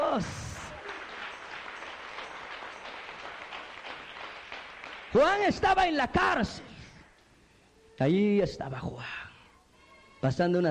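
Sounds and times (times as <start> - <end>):
crowd clapping: 0.0 - 5.9
speech: 0.2 - 0.4, 5.1 - 6.7, 8.0 - 9.2, 10.2 - 10.6.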